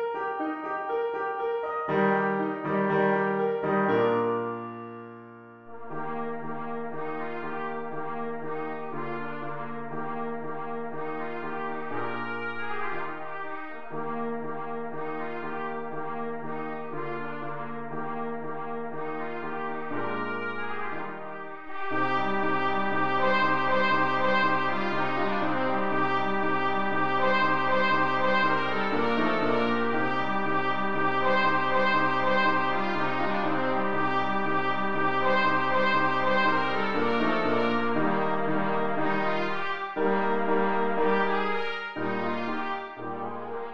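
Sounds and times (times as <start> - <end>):
trumpet: 0.2 - 43.7.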